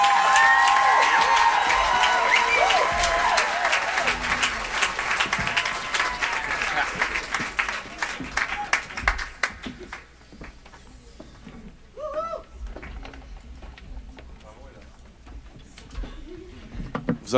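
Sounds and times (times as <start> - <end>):
cheers and voices: 0.0 - 9.1
crowd applause: 0.0 - 10.5.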